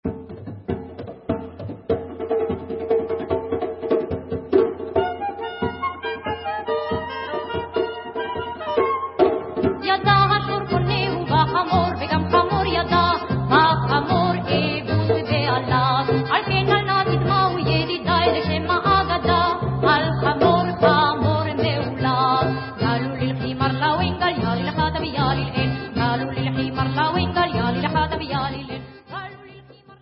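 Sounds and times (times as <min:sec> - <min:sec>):
debka music: 0:00.0 - 0:29.9.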